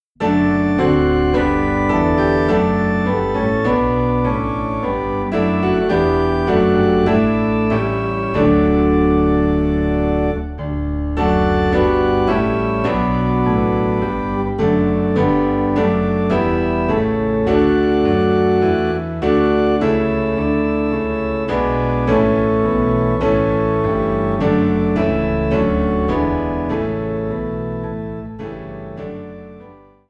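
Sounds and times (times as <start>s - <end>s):
low piano and organ in D: 0.0s - 30.0s.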